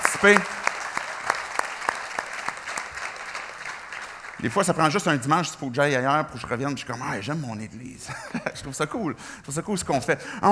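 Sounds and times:
laughter: 0:00.0 - 0:00.8, 0:06.4 - 0:09.2
audience applause: 0:00.0 - 0:05.6
speech: 0:00.2 - 0:00.6, 0:04.4 - 0:10.5.

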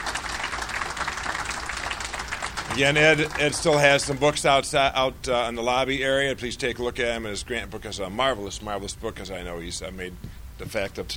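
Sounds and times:
audience applause: 0:00.0 - 0:04.3
speech: 0:02.8 - 0:11.1.

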